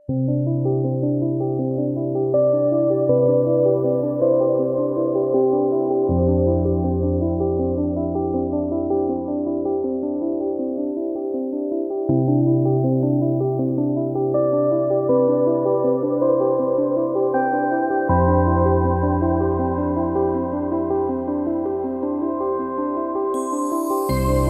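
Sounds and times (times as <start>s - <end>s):
background music: 0.1s - 24.4s.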